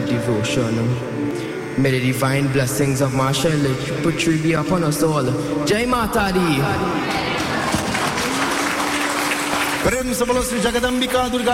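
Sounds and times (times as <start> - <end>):
speech: 0.2 - 7.4, 9.8 - 11.5
audience applause for a first-time speaker at a devotional gathering: 7.0 - 11.0.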